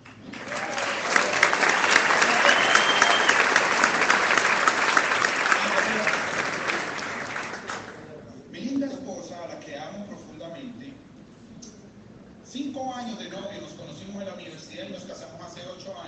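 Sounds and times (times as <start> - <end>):
audience clapping: 0.0 - 8.0.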